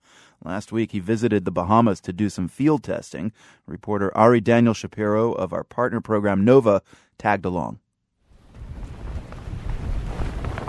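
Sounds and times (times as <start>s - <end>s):
speech: 0.4s - 7.8s
gusty wind roaring across an island pier: 8.3s - 10.6s.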